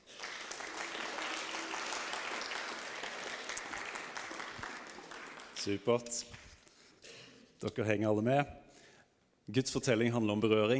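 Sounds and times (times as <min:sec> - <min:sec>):
audience applause: 0:00.0 - 0:06.0
speech: 0:05.6 - 0:06.4, 0:07.6 - 0:08.6, 0:09.5 - 0:10.7.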